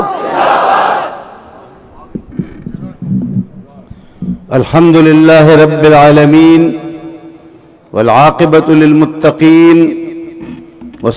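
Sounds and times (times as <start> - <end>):
crowd at a religious gathering shouting a slogan in unison: 0.0 - 1.4
speech: 4.5 - 6.8, 7.9 - 10.0.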